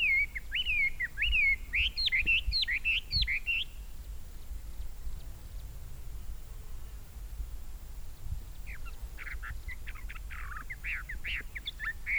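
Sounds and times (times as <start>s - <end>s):
Chinese hwamei singing at Dai Yun Shan, Fujian, China: 0.0s - 3.9s, 8.6s - 12.1s.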